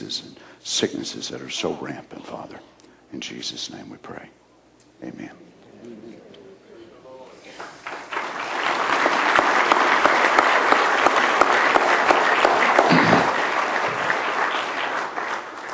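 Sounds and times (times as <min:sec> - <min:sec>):
speech: 0:00.1 - 0:04.4, 0:05.0 - 0:06.2
audience clapping loudly: 0:07.6 - 0:15.7.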